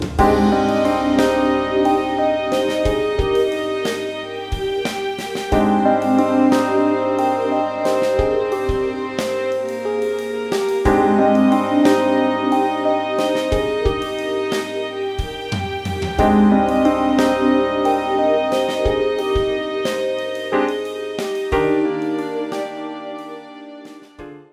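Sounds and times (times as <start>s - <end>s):
bass playing modes: 0.0s - 10.2s, 10.9s - 19.8s
backing track music: 0.0s - 24.5s.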